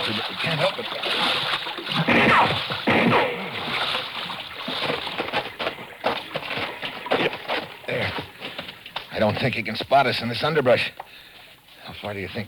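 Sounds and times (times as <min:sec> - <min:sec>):
person wading through shallow water, splashing: 0:00.0 - 0:09.5
speech: 0:00.1 - 0:01.4, 0:09.2 - 0:11.0, 0:12.0 - 0:12.4.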